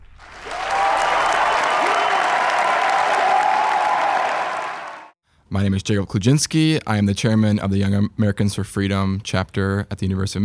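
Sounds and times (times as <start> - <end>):
cheering: 0.0 - 5.2
large crowd applauding in an auditorium: 0.0 - 5.2
speech: 5.6 - 10.4.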